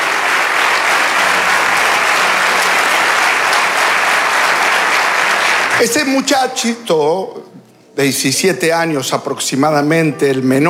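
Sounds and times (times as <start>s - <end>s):
church congregation applause: 0.0s - 6.8s
speech: 5.8s - 10.6s.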